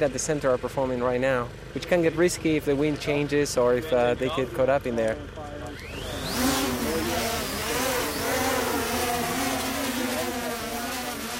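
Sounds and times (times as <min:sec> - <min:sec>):
speech: 0:00.0 - 0:05.4
drone flying over a field: 0:05.8 - 0:11.3.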